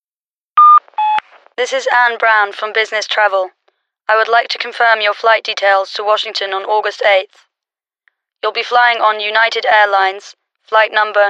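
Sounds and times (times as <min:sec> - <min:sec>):
answering machine beep before a recorded phone message: 0:00.6 - 0:01.2
speech: 0:01.6 - 0:07.5, 0:08.4 - 0:11.2.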